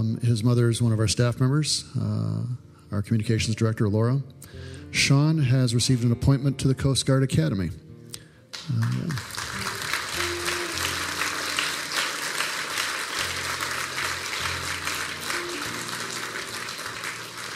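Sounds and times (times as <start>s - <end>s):
speech: 0.2s - 7.8s, 8.7s - 9.4s
crowd applauding: 8.5s - 17.5s.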